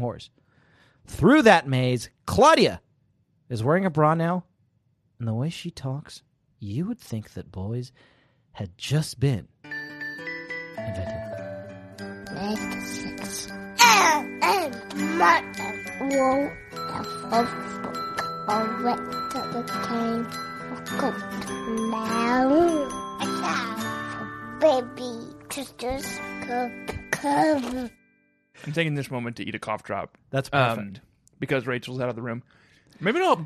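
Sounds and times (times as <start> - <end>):
speech: 0.0 - 0.4, 1.0 - 2.8, 3.5 - 4.5, 5.2 - 9.5, 10.9 - 11.3, 12.4 - 23.9, 24.6 - 28.0, 28.6 - 33.4
bright tinkling ringing tones: 9.7 - 25.3
child shrieking and babbling: 13.8 - 15.8.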